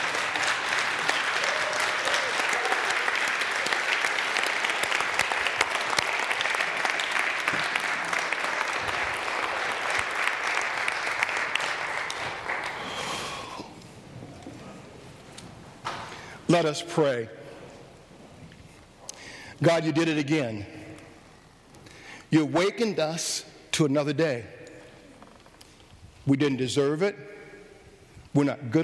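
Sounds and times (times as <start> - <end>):
audience standing and applauding: 0.0 - 13.8
speech: 16.6 - 17.4, 19.6 - 20.8, 22.3 - 24.6, 26.3 - 27.3, 28.4 - 28.8.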